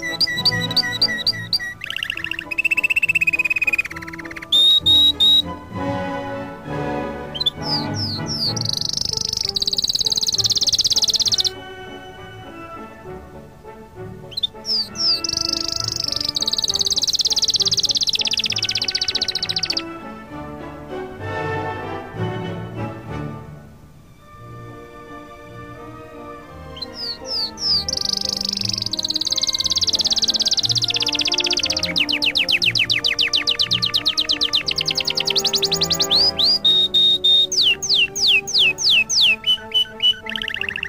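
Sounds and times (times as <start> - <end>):
canary singing a rapid trill: 0.0 - 5.6, 7.2 - 13.0, 14.1 - 20.0, 26.2 - 40.8
quiet background music: 0.0 - 40.8.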